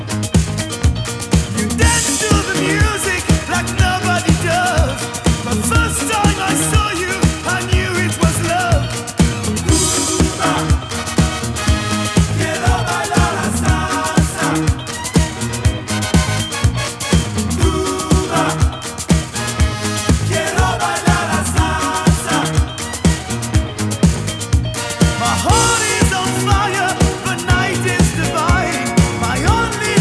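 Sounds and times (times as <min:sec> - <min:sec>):
disco music: 0:00.0 - 0:29.9.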